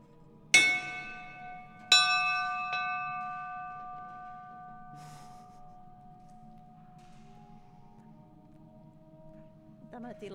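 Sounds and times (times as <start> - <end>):
bell rung as a doorbell: 0.6 - 8.0.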